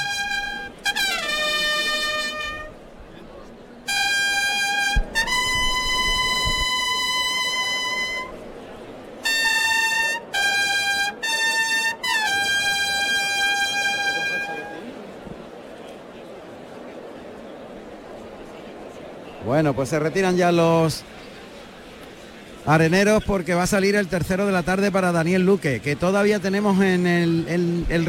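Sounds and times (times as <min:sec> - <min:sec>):
bugle calls in a bullring: 0:00.0 - 0:02.8, 0:03.9 - 0:08.6, 0:09.2 - 0:15.0
speech: 0:19.6 - 0:21.1, 0:22.6 - 0:28.0.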